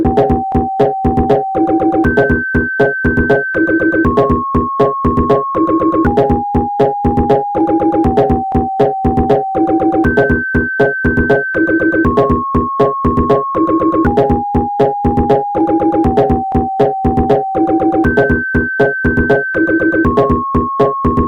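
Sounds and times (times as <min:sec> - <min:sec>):
sine wave tone: 0:00.1 - 0:21.2.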